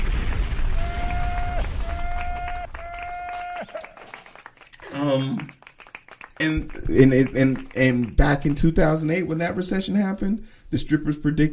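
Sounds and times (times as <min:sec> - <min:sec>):
bomb drop sound effect whistling and exploding: 0:00.0 - 0:03.7
speech: 0:05.1 - 0:05.6, 0:06.4 - 0:11.5.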